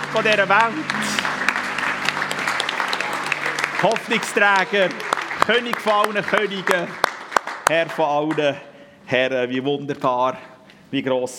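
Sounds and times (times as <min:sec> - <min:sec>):
audience applause: 0:00.0 - 0:08.4
speech: 0:00.1 - 0:01.4, 0:03.8 - 0:07.0, 0:07.7 - 0:11.3.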